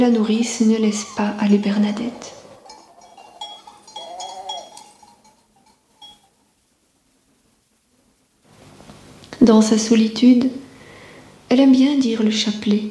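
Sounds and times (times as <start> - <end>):
speech: 0.0 - 2.4, 9.4 - 10.7, 11.5 - 12.8
sheep bleating: 0.8 - 6.2.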